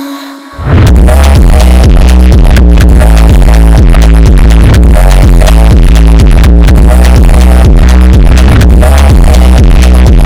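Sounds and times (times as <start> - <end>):
funk superbass: 0.6 - 10.2.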